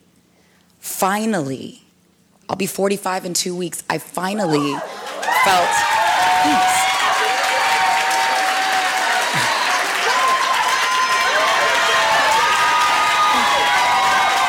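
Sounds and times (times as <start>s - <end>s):
speech: 1.0s - 1.8s, 2.5s - 6.8s
crowd cheers and whoops: 4.5s - 14.4s
crowd applause: 4.8s - 14.4s.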